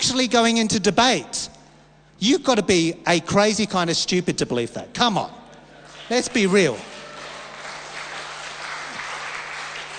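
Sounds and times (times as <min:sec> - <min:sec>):
speech: 0:00.1 - 0:01.5, 0:02.2 - 0:05.4, 0:06.1 - 0:06.9
audience clapping: 0:05.8 - 0:09.9.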